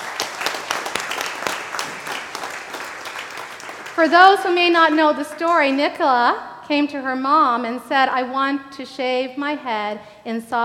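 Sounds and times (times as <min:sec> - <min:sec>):
crowd applause: 0:00.0 - 0:05.8
speech: 0:04.0 - 0:10.6.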